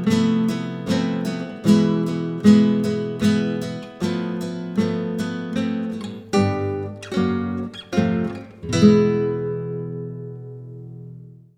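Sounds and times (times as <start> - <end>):
Spanish guitar duo playing: 0.0 - 11.5.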